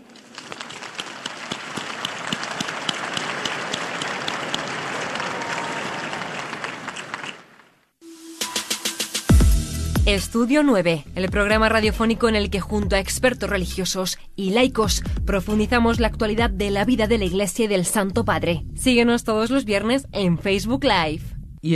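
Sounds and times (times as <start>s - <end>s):
crowd applause: 0.0s - 7.8s
speech: 10.1s - 21.7s.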